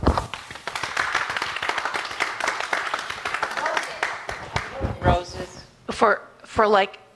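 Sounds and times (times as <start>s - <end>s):
group clapping in welcome: 0.0s - 5.0s
speech: 6.0s - 7.0s.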